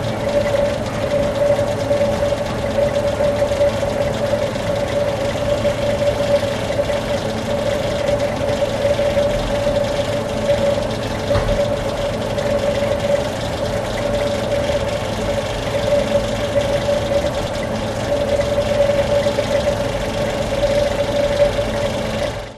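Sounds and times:
air conditioning unit rattle in a public place in Lisbon Portugal: 0:00.0 - 0:22.5.

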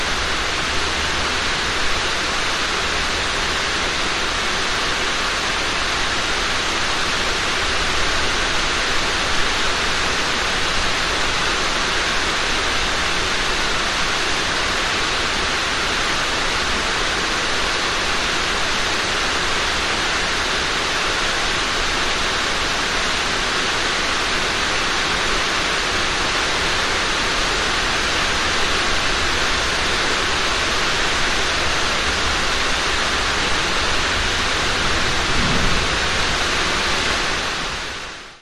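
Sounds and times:
heavy rain on warehouse roof: 0:00.0 - 0:38.3
thunder: 0:34.7 - 0:37.8.

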